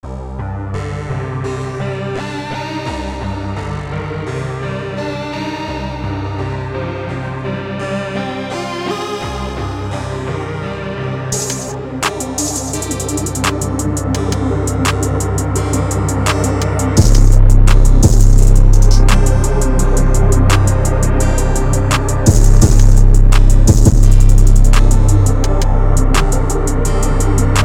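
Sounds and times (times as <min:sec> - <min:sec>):
beats: 0:11.4 - 0:27.6.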